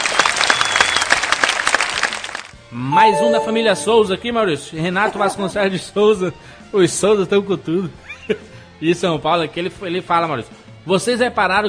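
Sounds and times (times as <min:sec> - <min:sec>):
applause: 0:00.0 - 0:03.4
speech: 0:02.7 - 0:11.6
laughter: 0:04.8 - 0:05.8.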